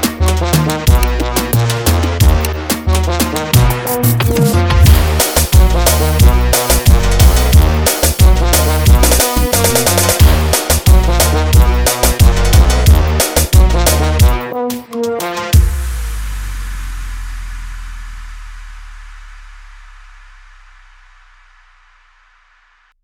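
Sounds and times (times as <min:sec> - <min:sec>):
trumpet: 0:00.0 - 0:16.0.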